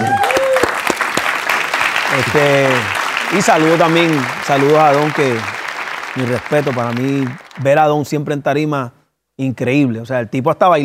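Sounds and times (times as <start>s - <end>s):
audience applause: 0.0s - 7.9s
speech: 2.2s - 5.6s, 6.2s - 10.8s.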